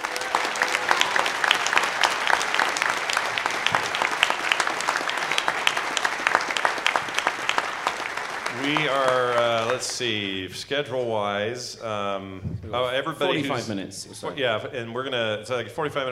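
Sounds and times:
audience applause: 0.0 - 10.5
speech: 9.8 - 16.1.

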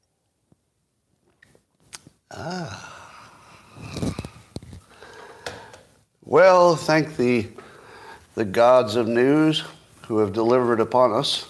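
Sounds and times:
speech: 2.3 - 2.9, 6.3 - 7.6, 8.4 - 11.4
sipping coffee: 3.7 - 5.7.

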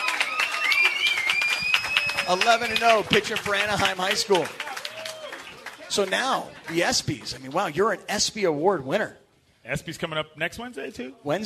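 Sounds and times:
audience applause for a high school softball pitcher: 0.0 - 7.8
speech: 2.3 - 4.6, 5.9 - 11.4.

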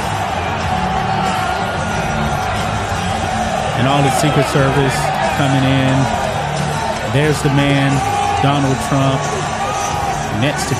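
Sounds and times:
large arena crowd cheering and whooping: 0.0 - 10.7
speech: 3.8 - 6.2, 7.1 - 9.5, 10.3 - 10.7.

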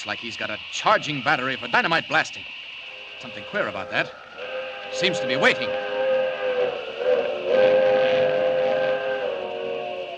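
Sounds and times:
speech: 0.0 - 2.6, 3.2 - 4.3, 4.9 - 5.9
steam hissing: 0.0 - 10.1
steam train whistle: 2.9 - 10.1.

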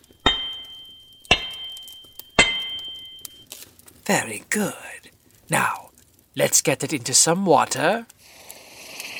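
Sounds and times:
hammer striking metal: 0.0 - 3.4
speech: 4.1 - 4.9, 5.5 - 5.8, 6.4 - 8.2.

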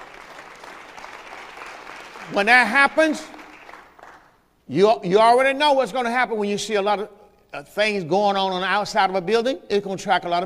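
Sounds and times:
audience clapping hands: 0.0 - 4.4
speech: 2.3 - 3.4, 4.7 - 10.4.

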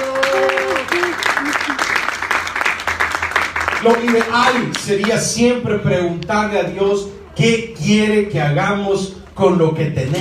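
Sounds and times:
audience applause: 0.0 - 5.2
speech: 3.8 - 10.2.

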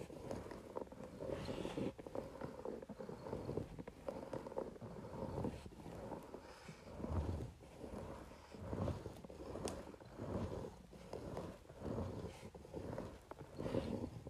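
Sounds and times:
facial roller rolling across paper: 0.0 - 14.2.

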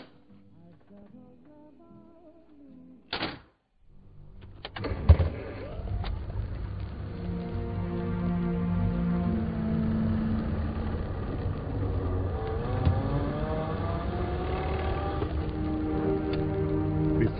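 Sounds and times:
car engine drone on a mountain road at dawn: 4.0 - 17.3.

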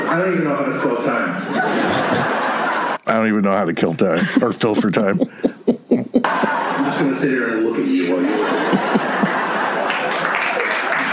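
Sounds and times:
laughter: 0.0 - 3.0, 4.0 - 11.1
speech: 0.1 - 1.8, 3.2 - 5.5, 6.2 - 9.2
audience applause: 8.6 - 11.1.

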